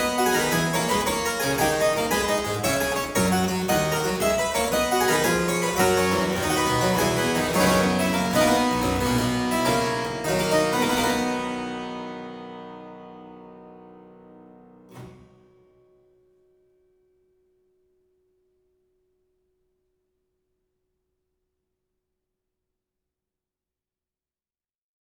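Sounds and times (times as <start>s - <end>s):
harpsichord playing a gigue in C major: 0.0s - 12.3s.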